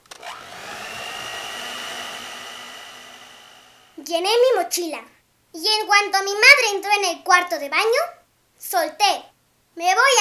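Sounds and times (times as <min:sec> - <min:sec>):
electric kitchen mixer running: 0:00.0 - 0:04.0
speech: 0:04.1 - 0:10.2.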